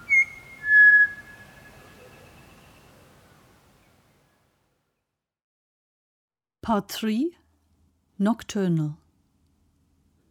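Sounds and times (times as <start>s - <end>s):
pied butcherbird singing fluting notes: 0.0s - 2.8s
speech: 6.7s - 7.4s, 8.2s - 9.0s.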